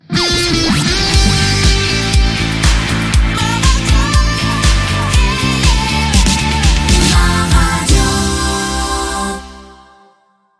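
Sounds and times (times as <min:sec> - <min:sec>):
rock music: 0:00.0 - 0:09.7.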